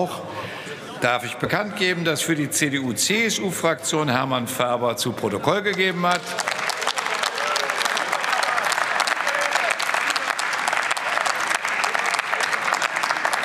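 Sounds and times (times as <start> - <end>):
speech: 0.0 - 0.3, 1.0 - 6.6
parliament applause: 5.6 - 13.4.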